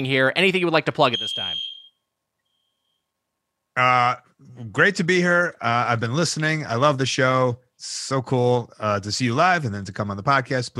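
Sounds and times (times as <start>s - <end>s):
speech: 0.0s - 1.6s, 3.8s - 10.7s
fire alarm beeping: 1.1s - 3.0s.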